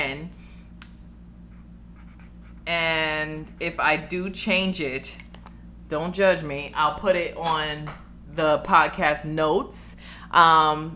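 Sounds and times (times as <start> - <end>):
low hum: 0.0 - 10.9
pen scratching while writing by hand: 1.5 - 2.6
speech: 2.7 - 5.2, 5.9 - 10.9.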